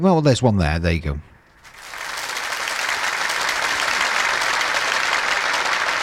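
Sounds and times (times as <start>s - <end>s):
speech: 0.0s - 1.3s
applause jingle: 1.6s - 6.0s.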